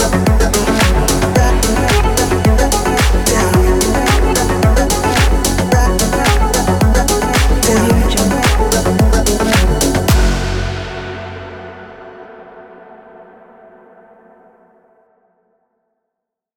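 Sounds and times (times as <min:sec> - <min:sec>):
industrial techno drum kit: 0:00.0 - 0:12.1.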